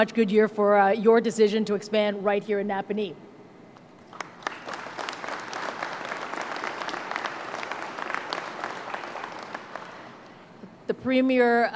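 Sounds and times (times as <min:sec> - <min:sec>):
speech: 0:00.0 - 0:03.3, 0:11.0 - 0:11.7
audience clapping: 0:04.0 - 0:10.5.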